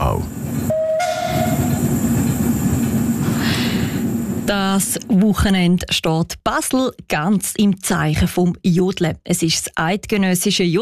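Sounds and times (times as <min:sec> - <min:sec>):
steam tram rumbling along the rails: 0:00.0 - 0:06.0
high whistle tone: 0:00.7 - 0:01.8
speech: 0:04.5 - 0:10.8.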